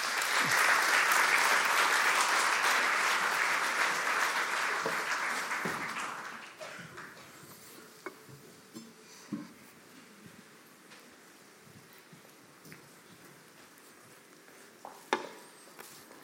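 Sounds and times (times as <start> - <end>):
audience applause: 0.0 - 7.3.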